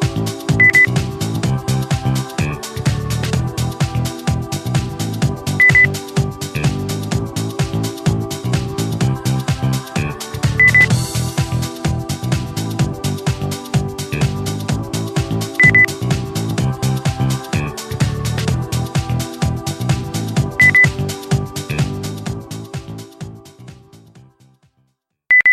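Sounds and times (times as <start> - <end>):
percussion: 0.0 - 24.4
maglev train beep: 0.6 - 0.9, 5.6 - 5.9, 10.6 - 10.9, 15.6 - 15.9, 20.6 - 20.9, 25.3 - 25.5.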